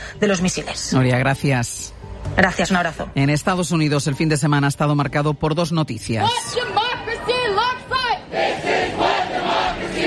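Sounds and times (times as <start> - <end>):
speech: 0.2 - 6.8
protest crowd chanting: 7.0 - 10.0.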